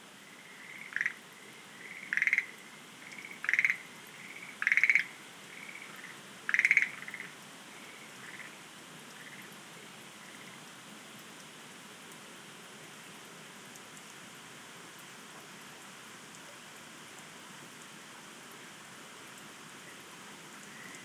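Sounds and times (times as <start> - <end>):
Schlegel's green tree frog calling: 0.3 - 8.6.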